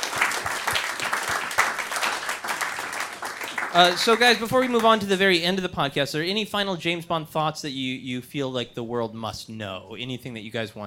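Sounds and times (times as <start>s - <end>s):
round of applause: 0.0s - 5.1s
speech: 3.7s - 10.8s.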